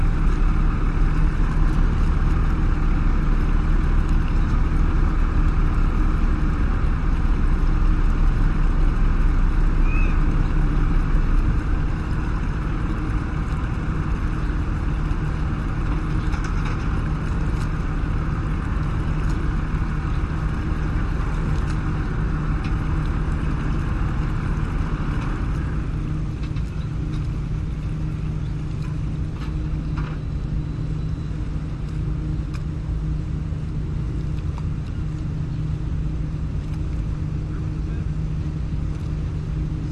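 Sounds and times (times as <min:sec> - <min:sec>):
boats and seabus at a market dock: 0:00.0 - 0:39.9
planes: 0:00.0 - 0:39.9
water at a market dock: 0:00.0 - 0:39.9
seagulls at a market dock: 0:09.8 - 0:10.3.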